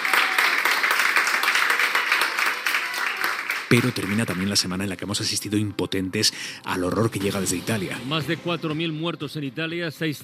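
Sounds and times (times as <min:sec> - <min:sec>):
hospital staff applauding extubated patient at Ramón y Cajal in Madrid: 0:00.0 - 0:05.5
speech: 0:03.7 - 0:10.2.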